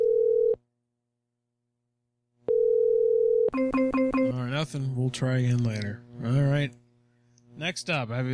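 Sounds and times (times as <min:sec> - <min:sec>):
telephone tone while calling a random Puerto Rican phone number: 0:00.0 - 0:00.6, 0:02.5 - 0:04.3
speech: 0:04.6 - 0:06.8, 0:07.6 - 0:08.3.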